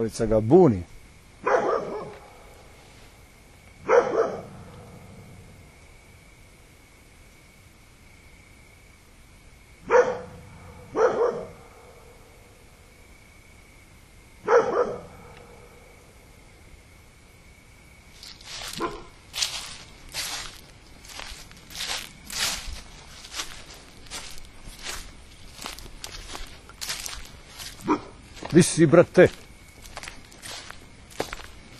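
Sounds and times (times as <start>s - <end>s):
speech: 0.0s - 0.9s, 28.6s - 29.5s
dog barking: 1.4s - 2.5s, 3.8s - 4.9s, 9.9s - 12.1s, 14.4s - 15.8s, 18.7s - 19.2s, 27.8s - 28.2s.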